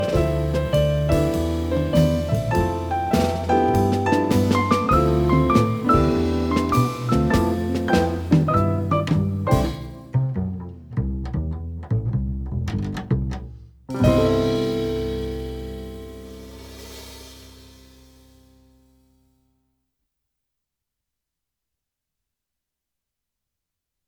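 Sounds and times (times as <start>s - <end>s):
jazz recorded on GX-R65CX cassette deck with dbx: 0.0s - 18.8s.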